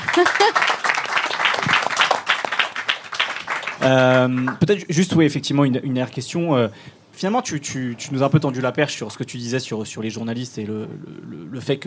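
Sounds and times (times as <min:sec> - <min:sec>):
applause: 0:00.0 - 0:04.7
speech: 0:00.2 - 0:00.8, 0:03.8 - 0:11.8.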